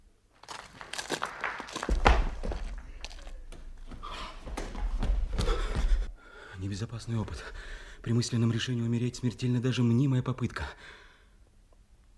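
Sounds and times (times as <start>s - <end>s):
footsteps of someone walking away: 0.3s - 6.1s
speech: 6.7s - 11.0s.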